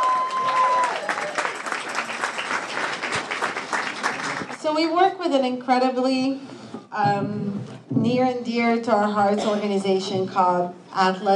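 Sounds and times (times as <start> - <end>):
audience applause: 0.0 - 4.6
speech: 4.6 - 11.3.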